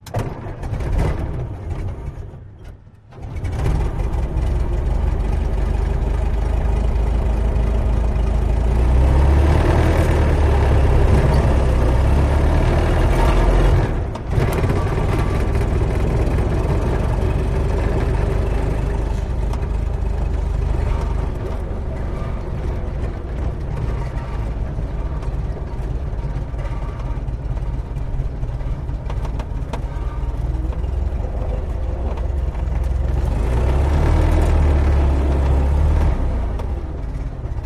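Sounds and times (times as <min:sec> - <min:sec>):
Model T creaks and clanks: 0:00.0 - 0:37.6
Model T engine starting, revving, accelerating and idling: 0:00.0 - 0:37.6.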